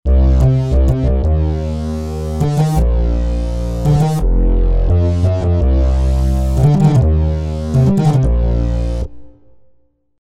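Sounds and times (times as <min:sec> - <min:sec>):
massive FM synth bass: 0:00.1 - 0:09.5.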